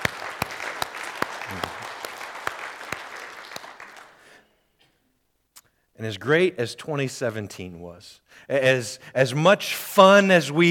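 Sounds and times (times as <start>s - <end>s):
round of applause: 0.0s - 4.4s
speech: 6.0s - 10.6s.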